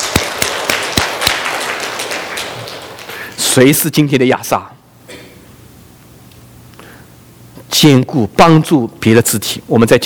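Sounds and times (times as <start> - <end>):
audience clapping: 0.0 - 3.8
speech: 3.6 - 4.8, 7.8 - 10.0.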